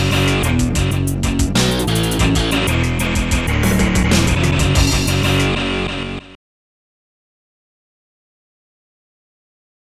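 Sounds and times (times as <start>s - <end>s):
short heavy rock music: 0.0s - 6.4s.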